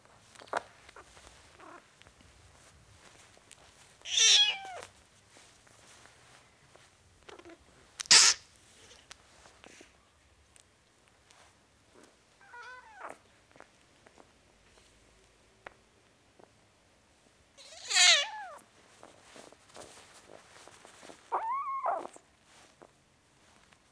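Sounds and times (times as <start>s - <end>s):
four-week-old kitten meowing: 4.1s - 4.8s, 17.6s - 18.6s, 21.3s - 22.2s.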